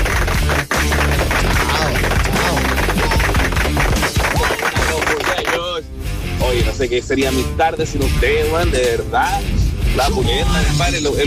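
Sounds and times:
loud dense applause: 0.0s - 5.7s
scattered voices: 1.0s - 5.7s, 8.8s - 11.2s
speech: 6.8s - 11.2s.

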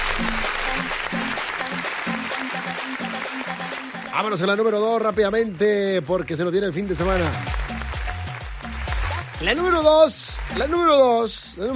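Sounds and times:
audience applause: 0.0s - 4.8s, 6.9s - 11.4s
speech: 4.2s - 7.8s, 9.4s - 11.7s.

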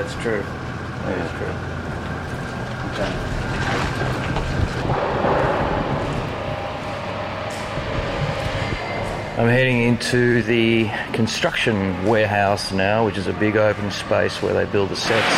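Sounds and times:
speech: 0.0s - 1.8s, 2.9s - 5.2s, 9.4s - 15.3s
faint constant hum: 0.0s - 15.3s
wind-making equipment blowing: 1.6s - 12.6s.

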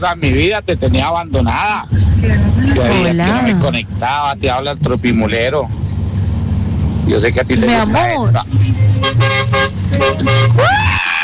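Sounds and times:
speech: 0.0s - 5.8s, 7.1s - 11.1s
big truck horn blaring: 8.5s - 10.7s.

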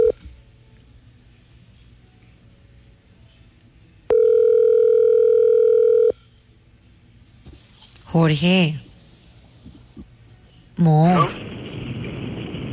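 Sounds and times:
phone ringback tone while a call connects: 4.1s - 6.2s
speech: 8.2s - 8.8s.

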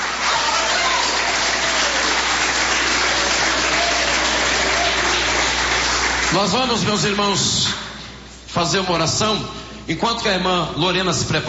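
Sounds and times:
audience applause: 0.0s - 6.6s
speech: 6.3s - 7.8s, 8.5s - 11.4s.

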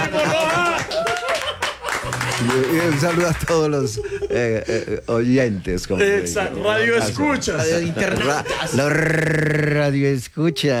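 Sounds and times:
applause: 0.0s - 3.7s
laughter: 0.0s - 5.2s, 5.9s - 9.6s
speech: 2.4s - 10.7s
animated voices: 4.4s - 10.7s.

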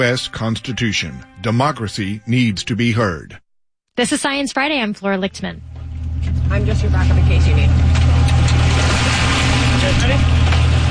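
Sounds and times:
speech: 0.0s - 3.4s, 4.0s - 8.7s, 9.8s - 10.4s
boat engine droning out on the ocean: 5.2s - 10.8s
wind and water noise: 7.7s - 10.8s.

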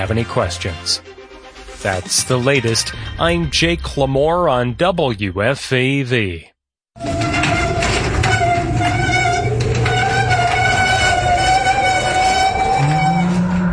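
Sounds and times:
speech: 0.0s - 1.1s, 1.8s - 7.2s
noisy old garage door operating: 7.0s - 13.6s.

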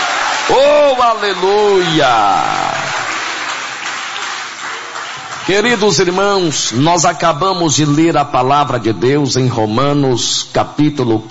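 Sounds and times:
congregation clapping during a church worship service: 0.0s - 7.1s
speech: 0.5s - 2.8s, 5.5s - 11.2s.

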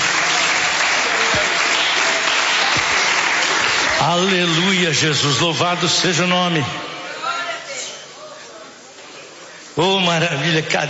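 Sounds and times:
crowd of people clapping hands: 0.0s - 5.0s
speech: 4.0s - 6.8s, 9.8s - 10.8s.

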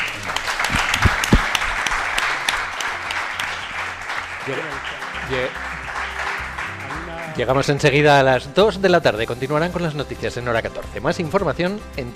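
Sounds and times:
audience applause: 0.0s - 8.4s
speech: 4.5s - 5.7s, 7.4s - 12.1s.

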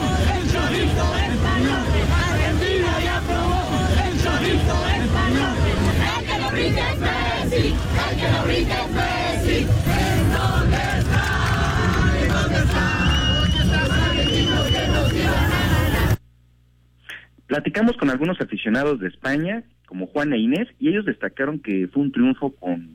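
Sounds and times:
Mexican football fans chanting against the Argentine team: 0.0s - 16.2s
speech: 17.6s - 22.9s.

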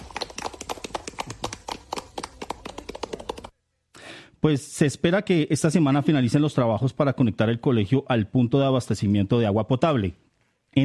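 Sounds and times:
students clapping in celebration: 0.0s - 3.5s
speech: 4.4s - 10.8s.

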